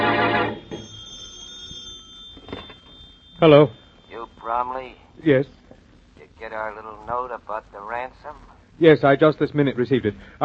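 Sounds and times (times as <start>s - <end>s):
telephone ringing in the Brumley home: 0.0s - 5.2s
speech: 3.4s - 3.8s, 4.4s - 5.6s, 6.4s - 10.4s.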